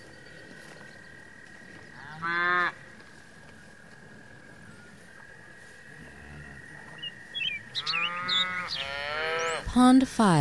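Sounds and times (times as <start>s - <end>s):
cow mooing: 2.0s - 2.8s, 7.8s - 9.6s
speech: 9.8s - 10.4s.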